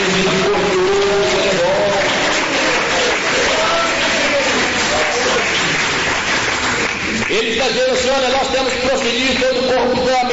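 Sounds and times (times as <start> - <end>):
audience clapping: 0.0 - 10.3.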